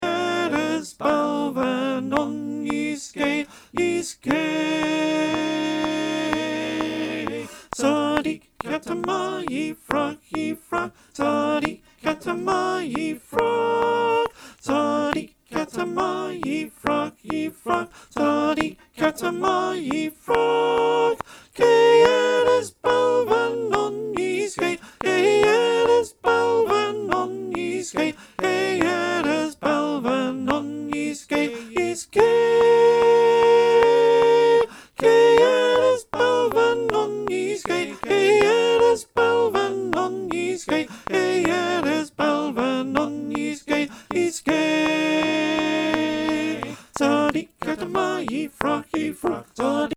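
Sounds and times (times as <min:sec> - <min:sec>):
choir singing: 0:00.0 - 0:49.9
soprano click track: 0:01.6 - 0:10.6, 0:16.4 - 0:29.4, 0:30.0 - 0:49.7.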